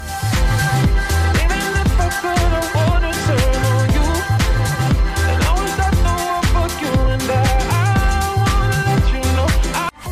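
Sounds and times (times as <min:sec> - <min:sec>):
remix ringtone: 0:00.0 - 0:10.1.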